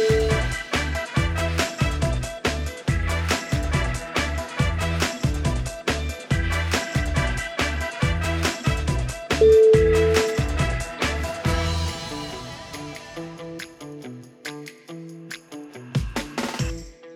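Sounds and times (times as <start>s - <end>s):
retro advert: 0.0s - 12.4s.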